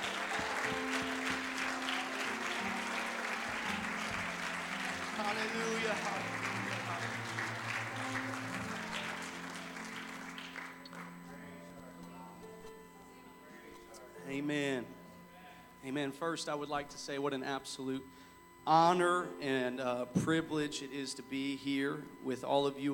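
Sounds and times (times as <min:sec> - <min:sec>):
audience clapping hands: 0:00.0 - 0:11.3
speech: 0:05.4 - 0:06.6, 0:16.0 - 0:22.9.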